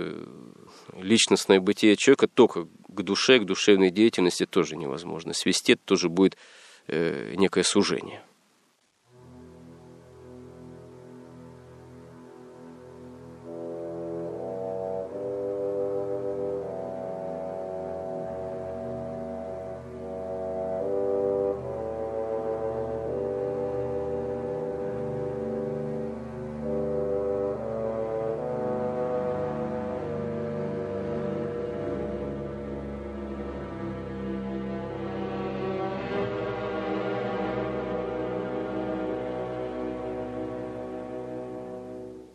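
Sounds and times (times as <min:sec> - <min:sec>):
speech: 0:01.0 - 0:08.3
orchestral symphony excerpt: 0:09.1 - 0:42.3.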